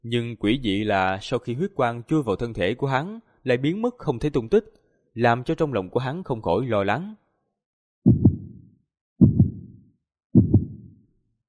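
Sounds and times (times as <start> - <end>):
speech: 0.0 - 7.2
heartbeat low double beats: 8.1 - 11.0.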